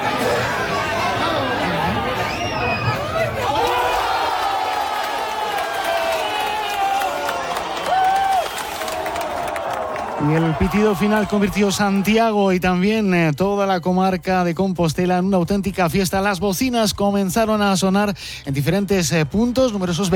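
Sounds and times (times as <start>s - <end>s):
crowd celebrating a goal in bars: 0.0s - 12.8s, 18.5s - 20.1s
speech: 10.3s - 20.1s.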